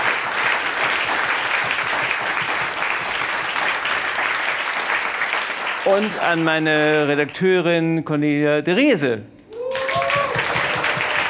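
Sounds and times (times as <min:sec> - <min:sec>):
audience applause: 0:00.0 - 0:07.1, 0:09.6 - 0:11.2
speech: 0:05.9 - 0:09.4.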